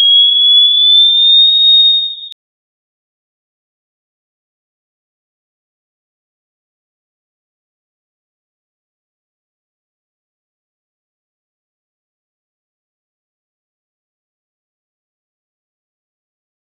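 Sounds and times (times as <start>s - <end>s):
sine wave pulse: 0.0s - 2.4s.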